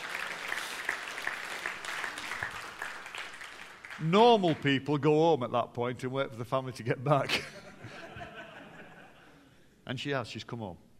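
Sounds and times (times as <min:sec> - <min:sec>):
audience applauding: 0:00.0 - 0:04.8
speech: 0:04.0 - 0:07.6, 0:09.9 - 0:10.8
laughter: 0:07.2 - 0:09.6.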